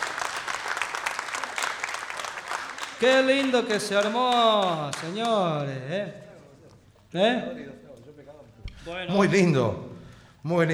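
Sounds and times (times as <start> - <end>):
applause after a chacarera performance: 0.0 - 5.8
speech: 3.0 - 6.2, 7.1 - 7.8, 8.8 - 10.7.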